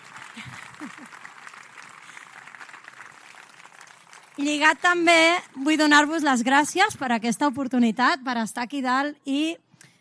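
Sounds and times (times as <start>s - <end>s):
crowd applauding: 0.0s - 5.4s
speech: 4.4s - 9.6s.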